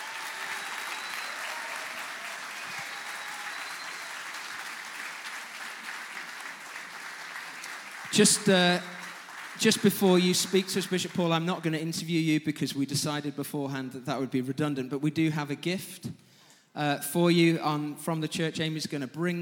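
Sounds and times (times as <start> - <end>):
audience applause welcoming a bishop at a Vision Sunday church service: 0.0 - 11.2
speech: 8.1 - 8.9, 9.6 - 16.2, 16.8 - 19.3.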